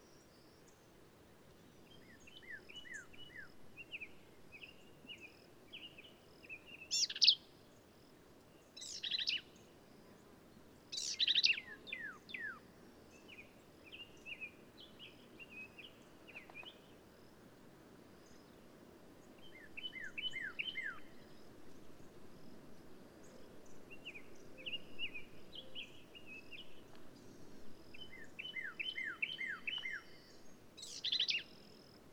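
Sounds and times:
background hiss: 0.0s - 32.1s
black-capped vireo singing: 1.6s - 7.8s, 8.5s - 10.3s, 10.9s - 17.0s, 19.2s - 21.5s, 23.2s - 32.0s.

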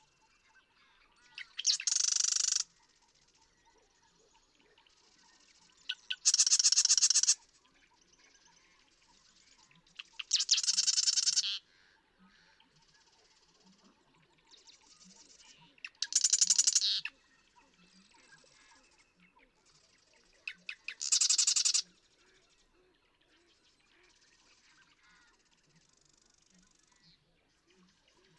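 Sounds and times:
marsh wren singing: 1.3s - 2.7s, 5.9s - 7.4s, 10.0s - 11.6s, 15.8s - 17.1s, 20.5s - 21.8s.

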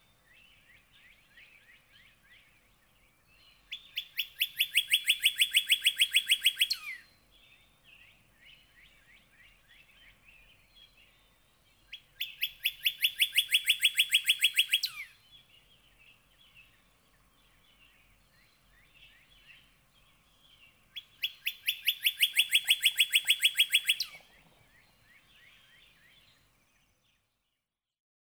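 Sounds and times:
Northern cardinal whistling song: 3.4s - 7.1s, 11.9s - 16.7s, 20.6s - 26.4s.

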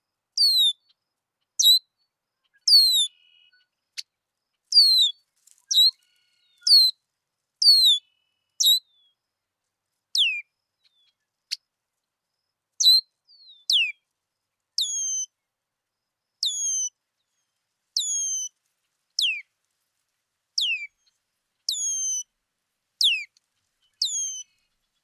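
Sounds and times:
red-winged blackbird calling with whistles and clicks: 0.4s - 0.8s, 1.6s - 1.8s, 2.6s - 3.3s, 4.7s - 6.0s, 6.6s - 6.9s, 7.6s - 8.0s, 8.6s - 8.8s, 10.2s - 11.0s, 12.8s - 14.0s, 14.8s - 15.3s, 16.4s - 16.9s, 18.0s - 18.5s, 19.2s - 19.4s, 20.6s - 20.9s, 21.7s - 22.2s, 23.0s - 23.3s, 23.9s - 24.6s.

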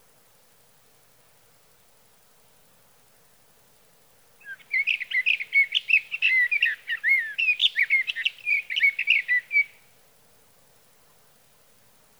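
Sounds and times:
sage thrasher song warbling: 4.4s - 9.8s.

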